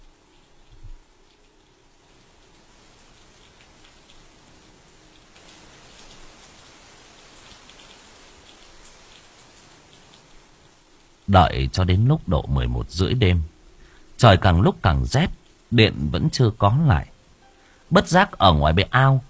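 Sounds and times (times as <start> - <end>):
steady rain on a cold night pattering outside a house porch: 0.0 - 19.2
speech: 11.3 - 13.5, 14.2 - 17.1, 17.9 - 19.2.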